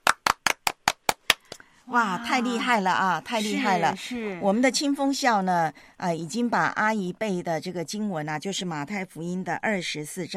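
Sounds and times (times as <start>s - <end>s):
round of applause: 0.0s - 1.6s
speech: 1.9s - 10.3s.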